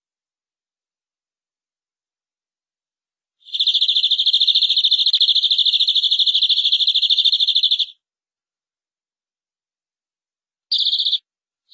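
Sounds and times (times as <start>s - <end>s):
canary song rolling trill: 3.4s - 8.0s, 10.7s - 11.7s.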